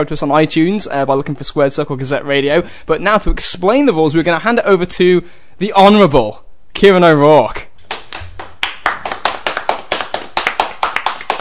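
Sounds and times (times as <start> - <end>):
speech: 0.0 - 7.7
round of applause: 7.9 - 11.3.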